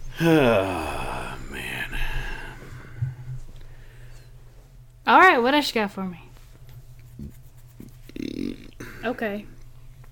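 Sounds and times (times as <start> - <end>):
person belching: 0.1 - 2.5, 8.2 - 9.1
speech: 0.2 - 0.9, 5.1 - 6.2, 9.0 - 9.6.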